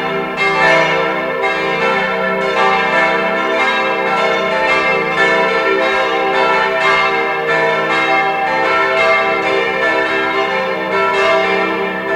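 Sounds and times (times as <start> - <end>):
church bells ringing: 0.0 - 12.1.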